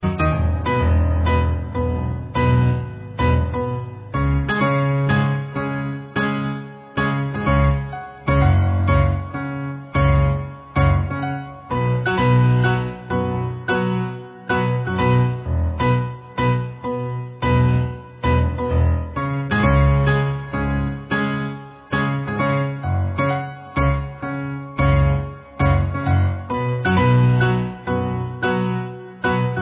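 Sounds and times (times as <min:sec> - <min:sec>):
jangly piano: 0:00.0 - 0:29.6.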